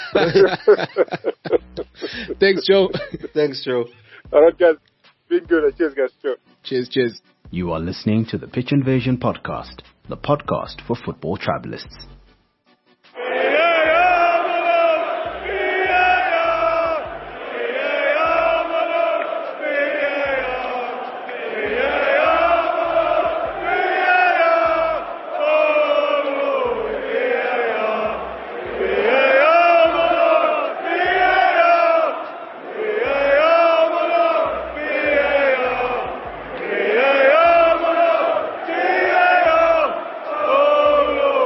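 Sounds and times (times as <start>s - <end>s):
drum beat: 0.0s - 3.4s, 4.3s - 6.0s, 7.4s - 10.9s, 13.7s - 41.4s
laughter: 0.0s - 3.5s
speech: 0.1s - 12.1s
football fans chanting in a stadium: 13.1s - 41.4s.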